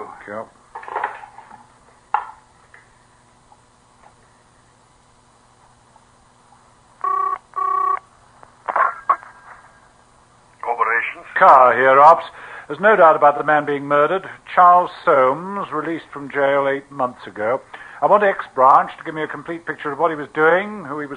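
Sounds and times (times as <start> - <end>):
speech: 0.0 - 0.6, 11.3 - 21.1
telephone keypad tones being dialed: 7.0 - 8.0.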